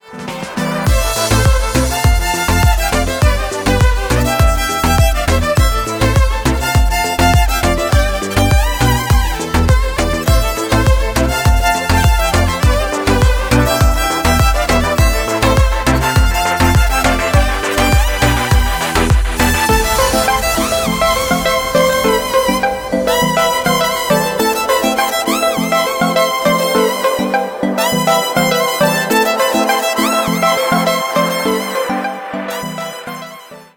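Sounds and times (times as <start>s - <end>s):
electric violin cover: 0.0s - 33.7s.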